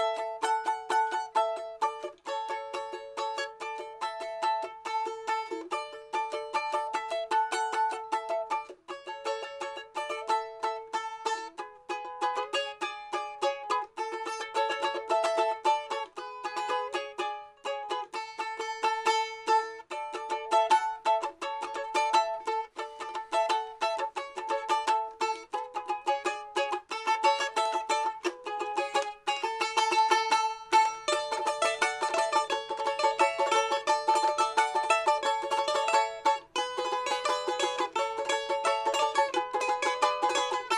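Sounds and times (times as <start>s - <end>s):
balalaika folk instrument playing: 0.0s - 40.7s.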